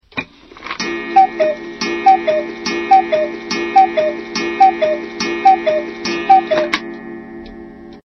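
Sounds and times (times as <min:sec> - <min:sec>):
ringtone: 0:00.8 - 0:06.8.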